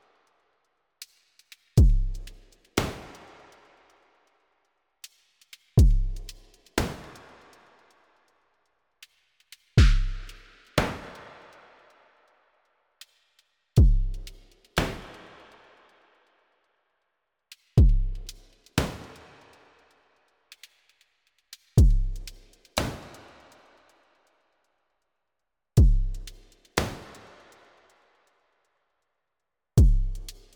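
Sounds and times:
drums: 1.0s - 4.4s, 5.0s - 8.4s, 9.0s - 12.3s, 13.0s - 16.2s, 17.5s - 24.4s, 25.8s - 28.4s, 29.8s - 30.5s.

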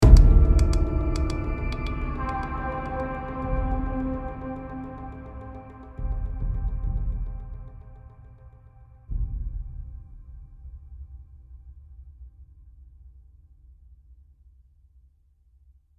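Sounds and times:
sci-fi outro music: 0.0s - 8.4s.

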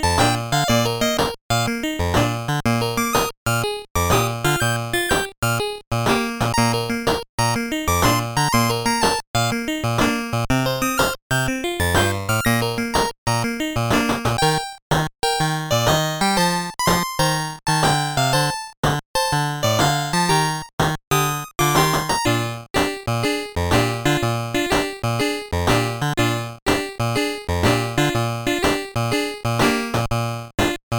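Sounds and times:
puzzle game background music: 0.1s - 14.8s, 15.4s - 30.8s.

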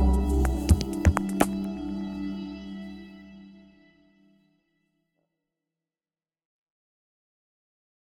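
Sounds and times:
intense chord: 0.0s - 4.0s.

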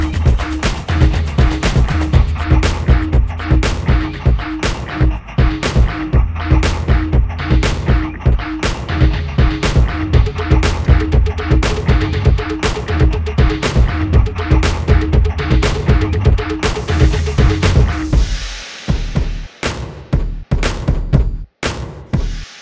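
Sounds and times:
train drums: 0.0s - 22.5s.

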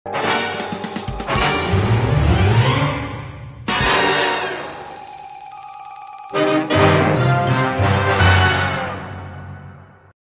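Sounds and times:
battle end defeat jingle: 0.1s - 2.7s, 3.8s - 9.0s.

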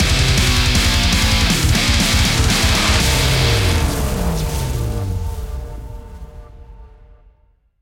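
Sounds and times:
instrumental game music: 0.0s - 5.3s.

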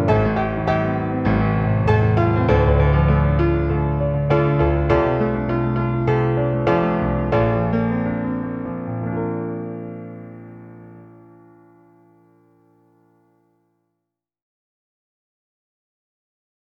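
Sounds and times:
piano music: 0.0s - 13.3s.

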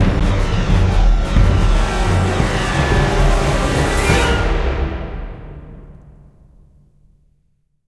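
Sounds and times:
terror music sting: 0.0s - 6.0s.

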